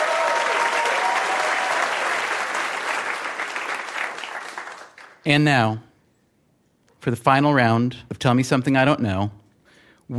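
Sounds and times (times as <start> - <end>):
game show audience applauding contestants: 0.0 - 5.2
speech: 5.2 - 5.9, 7.0 - 9.4.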